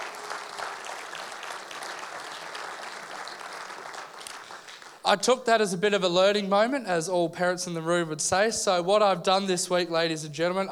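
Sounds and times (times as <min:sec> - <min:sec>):
crowd applause: 0:00.0 - 0:05.0
speech: 0:05.1 - 0:10.7.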